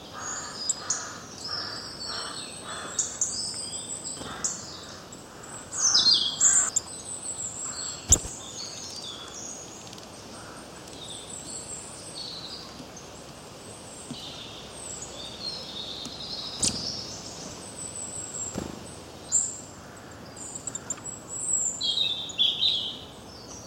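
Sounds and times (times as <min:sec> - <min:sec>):
birds chirping and tweeting: 0:00.0 - 0:23.1.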